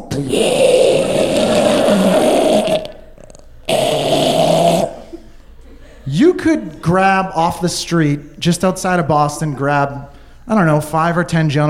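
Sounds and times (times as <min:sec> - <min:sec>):
man imitating a sleeping man's snoring: 0:00.1 - 0:05.1
speech: 0:00.2 - 0:00.7, 0:06.5 - 0:11.6.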